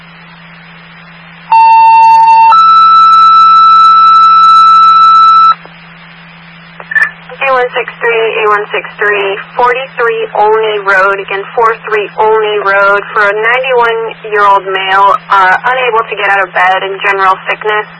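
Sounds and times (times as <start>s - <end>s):
low hum: 0.0s - 17.9s
emergency dispatch alert tones: 1.5s - 5.6s
speech: 7.6s - 17.9s.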